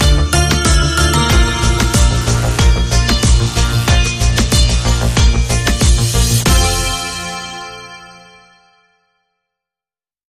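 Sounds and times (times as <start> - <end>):
reggaeton rhythm: 0.0 - 7.7.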